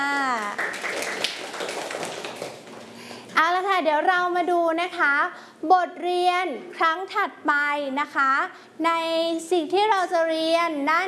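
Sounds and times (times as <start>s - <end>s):
room full of children clapping: 0.2s - 3.0s
speech: 3.8s - 11.0s.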